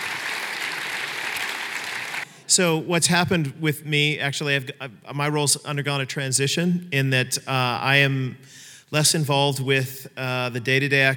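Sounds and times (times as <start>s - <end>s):
big round of applause: 0.0s - 2.4s
speech: 2.5s - 11.1s.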